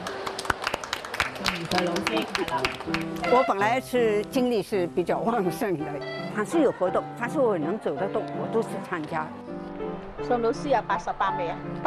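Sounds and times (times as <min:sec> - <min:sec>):
light scattered applause from a small audience: 0:00.0 - 0:03.6
speech: 0:01.6 - 0:11.8.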